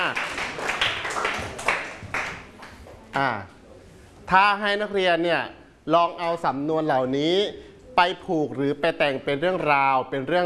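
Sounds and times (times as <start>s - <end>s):
clapping: 0.0s - 3.0s
speech: 4.3s - 10.4s.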